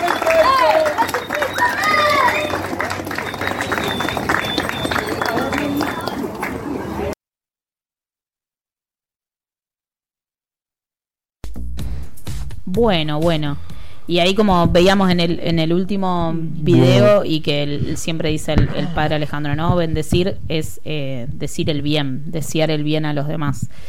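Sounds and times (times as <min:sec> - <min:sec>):
crowd clapping and cheering for the cooks: 0:00.0 - 0:07.2
voices chattering: 0:00.0 - 0:07.2, 0:16.6 - 0:18.0
speech: 0:12.8 - 0:23.8.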